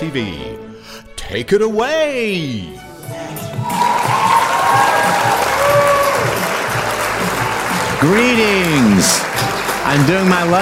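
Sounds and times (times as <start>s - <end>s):
speech: 0.0s - 4.1s, 8.0s - 10.6s
golf clap applause: 3.8s - 10.6s.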